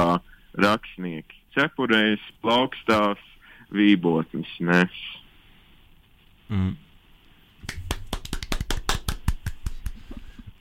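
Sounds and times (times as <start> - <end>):
speech: 0.2 - 5.2, 6.5 - 6.8
applause in the studio: 7.6 - 9.8.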